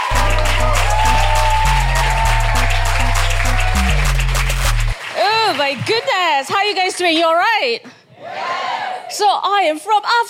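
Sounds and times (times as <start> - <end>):
upbeat walk-on music with thumping bass line: 0.0 - 5.0
crowd clapping and cheering welcoming a comedian: 0.0 - 7.2
speech: 5.6 - 8.0, 9.1 - 10.2.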